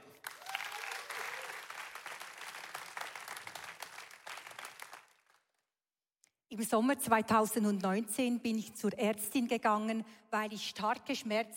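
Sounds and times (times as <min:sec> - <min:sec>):
audience applause: 0:00.0 - 0:05.5
speech: 0:06.6 - 0:11.5.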